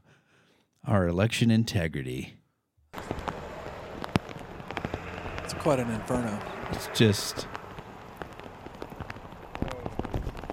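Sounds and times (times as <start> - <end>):
speech: 0.9 - 2.4, 5.6 - 7.6
rain falling outside in Washington State: 3.0 - 10.5.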